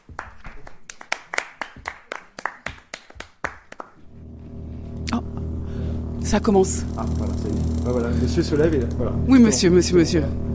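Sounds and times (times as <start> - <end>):
small audience clapping: 0.0 - 4.1
speech: 6.3 - 10.5.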